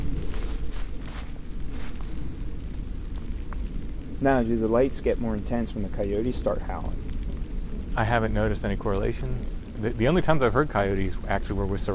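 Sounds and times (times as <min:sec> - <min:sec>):
crunchy footsteps through leaves and brush in the woods: 0:00.0 - 0:02.6
steady low rumble: 0:00.0 - 0:11.9
speech: 0:04.2 - 0:07.0, 0:08.0 - 0:11.9.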